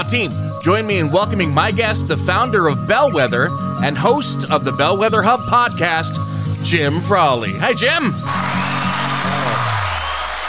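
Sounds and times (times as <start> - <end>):
speech: 0.0 - 8.6
applause after guest introduction: 8.3 - 10.4.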